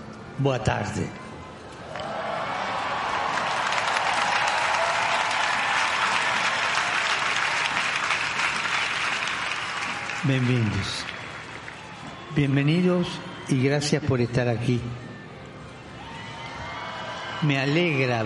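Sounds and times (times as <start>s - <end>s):
speech: 0.4s - 1.2s, 10.2s - 11.1s, 12.4s - 15.0s, 17.4s - 18.2s
young crowd cheering roar for the pope in Lisbon: 1.8s - 13.8s, 14.9s - 18.2s
young crowd clapping for the pope in Lisbon: 2.0s - 13.1s.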